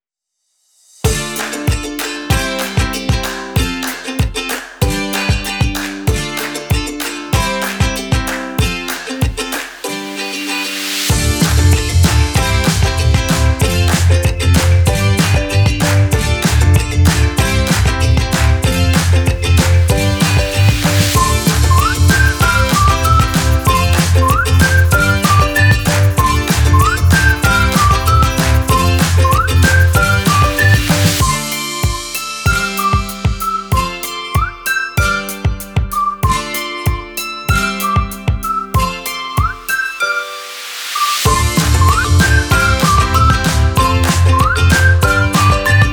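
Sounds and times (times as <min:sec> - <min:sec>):
upbeat optimistic music: 0:01.0 - 0:45.9.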